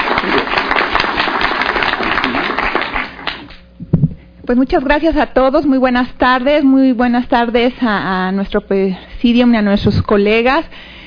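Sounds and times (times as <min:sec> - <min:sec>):
audience applause: 0:00.0 - 0:03.5
speech: 0:04.5 - 0:10.9.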